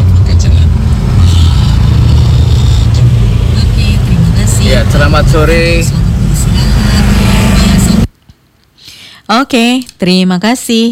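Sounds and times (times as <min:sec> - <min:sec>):
congested road traffic on the Kalibanteng flyover: 0:00.0 - 0:08.2
speech: 0:05.0 - 0:06.0, 0:09.3 - 0:10.8.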